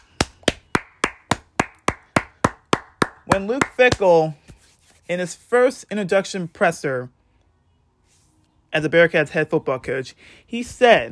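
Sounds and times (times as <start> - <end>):
hands clapping at a steady pace: 0.0 - 4.1
speech: 3.3 - 4.4, 5.1 - 7.2, 8.7 - 11.1.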